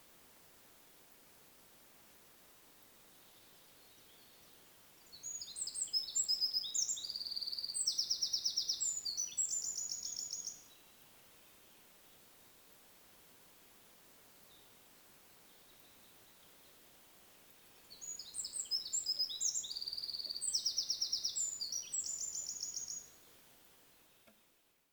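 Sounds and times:
faint hiss: 0.0 - 24.9
Eurasian wren song: 5.1 - 10.6, 17.9 - 23.2.

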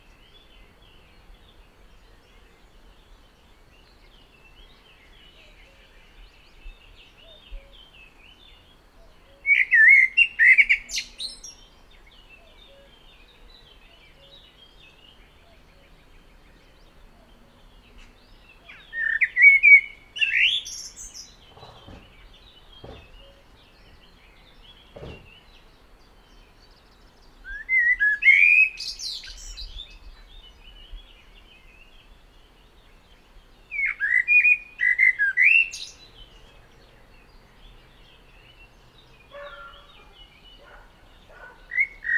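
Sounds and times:
common blackbird song: 0.0 - 42.1
faint birdsong: 0.0 - 42.1
brief rustle: 20.8 - 25.7.

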